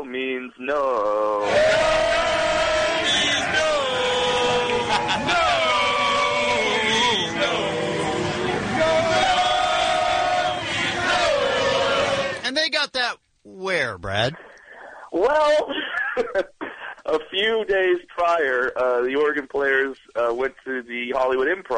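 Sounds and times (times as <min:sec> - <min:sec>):
speech: 0:00.1 - 0:01.9, 0:13.9 - 0:14.5, 0:15.1 - 0:16.5, 0:17.1 - 0:21.7
stadium crowd war chant: 0:01.4 - 0:12.4
laughter: 0:03.5 - 0:06.5, 0:15.2 - 0:17.2.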